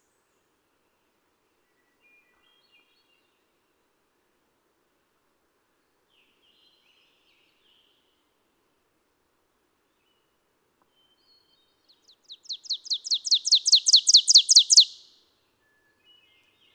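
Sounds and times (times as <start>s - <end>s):
ovenbird call: 12.4s - 15.1s.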